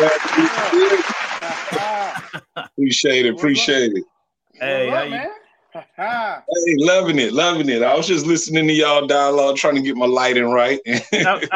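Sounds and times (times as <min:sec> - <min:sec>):
clapping applause: 0:00.0 - 0:02.5
laughter: 0:00.0 - 0:02.8, 0:10.9 - 0:11.5
speech: 0:02.9 - 0:11.5.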